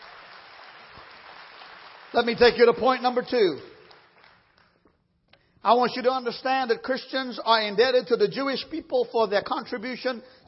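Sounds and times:
audience clapping hands: 0.0 - 4.9
speech: 2.2 - 3.7, 5.6 - 10.4.

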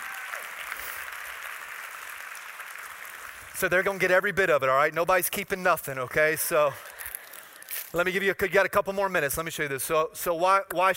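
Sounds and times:
audience clapping: 0.0 - 4.6
speech: 3.6 - 6.9, 7.9 - 10.9.

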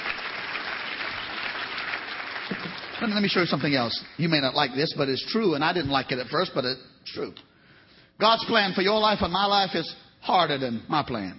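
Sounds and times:
audience clapping: 0.0 - 4.5
speech: 3.0 - 7.5, 8.2 - 11.3.

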